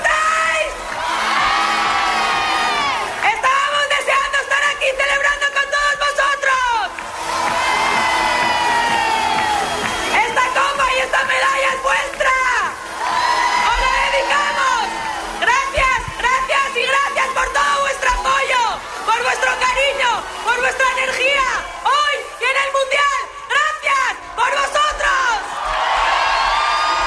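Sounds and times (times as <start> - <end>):
large crowd cheering and applauding: 0.0 - 27.0.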